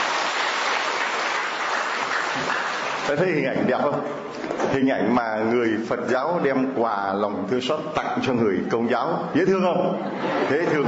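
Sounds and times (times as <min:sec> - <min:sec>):
audience applause at a Catholic gathering: 0:00.0 - 0:03.3
speech: 0:02.4 - 0:10.8
laughter: 0:09.9 - 0:10.8.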